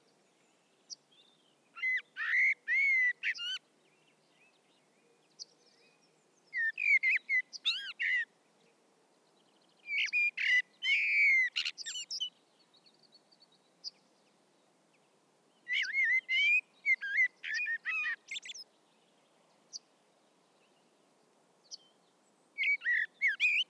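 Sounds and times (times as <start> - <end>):
common blackbird singing: 0.9 - 3.6, 4.3 - 8.3, 9.5 - 12.4, 15.6 - 18.7, 22.6 - 23.6.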